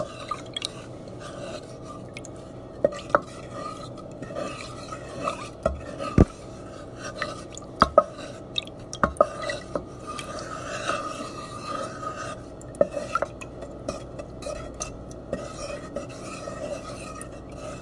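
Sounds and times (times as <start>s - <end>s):
stirring a cooking pot: 0.0s - 17.8s.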